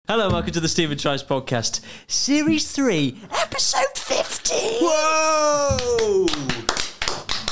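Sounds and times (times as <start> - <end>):
speech: 0.1 - 6.5
two-finger clap: 5.7 - 7.5.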